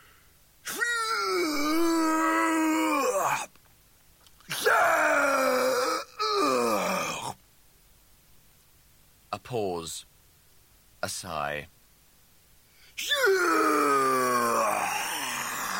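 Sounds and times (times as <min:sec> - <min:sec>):
performer voicing a man retching and vomiting: 0:00.7 - 0:03.5, 0:04.4 - 0:07.4, 0:13.0 - 0:15.7
speech: 0:11.2 - 0:11.8.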